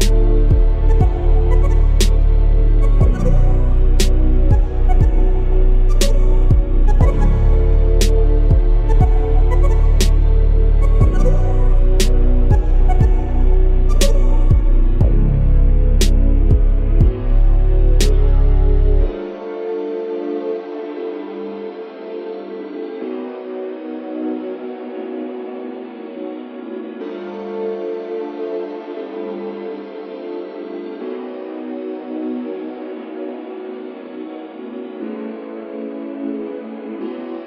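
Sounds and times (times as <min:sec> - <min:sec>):
dark ambient trash music: 0:00.0 - 0:37.4.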